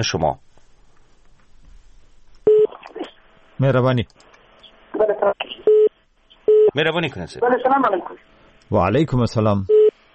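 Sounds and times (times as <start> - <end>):
speech: 0.0 - 0.4, 3.6 - 4.3, 5.0 - 5.7, 6.8 - 9.8
telephone beeps from a line that has been cut off: 2.5 - 2.7, 9.7 - 9.9.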